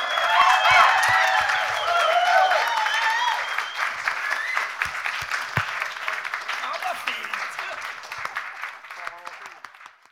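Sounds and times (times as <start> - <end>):
audience whoops and cheering: 0.0 - 4.8
audience applause at drummer award ceremony: 0.0 - 10.1.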